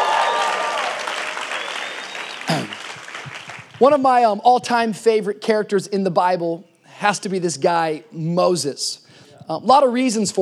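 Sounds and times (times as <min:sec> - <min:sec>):
church congregation clapping: 0:00.0 - 0:03.9
speech: 0:03.8 - 0:10.4.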